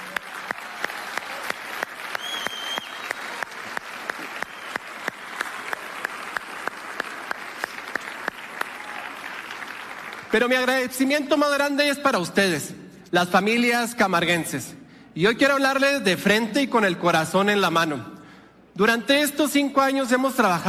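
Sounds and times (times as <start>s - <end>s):
audience applause: 0.0s - 10.5s
speech: 10.4s - 18.1s, 18.8s - 20.6s.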